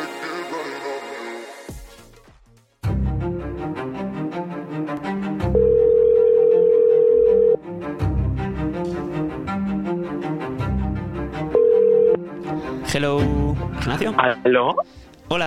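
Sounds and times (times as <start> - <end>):
rhythmic music: 0.0 - 5.6, 7.6 - 15.4
telephone calling tone while calling a podcast guest: 5.6 - 7.6, 11.6 - 12.2
speech: 14.0 - 15.4.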